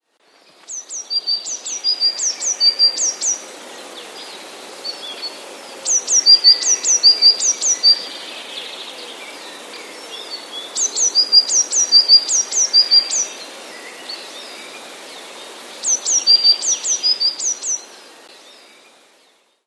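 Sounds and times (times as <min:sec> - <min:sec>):
Eurasian blue tit singing: 0:00.4 - 0:03.4, 0:04.0 - 0:19.6.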